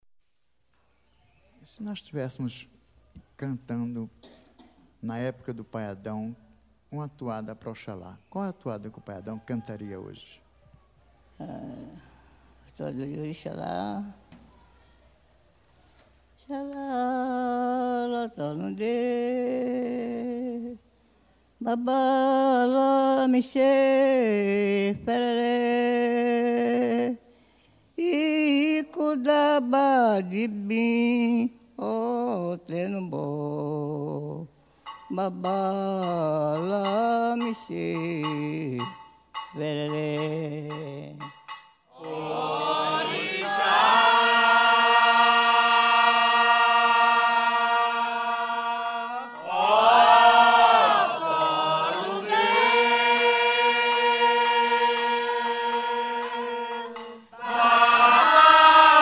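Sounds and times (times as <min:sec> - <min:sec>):
devotional song: 0:16.4 - 0:58.9.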